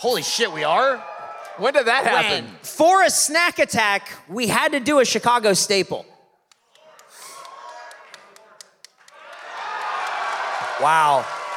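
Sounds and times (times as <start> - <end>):
speech: 0.0 - 6.1, 10.8 - 11.4
live audience applause: 7.0 - 11.5.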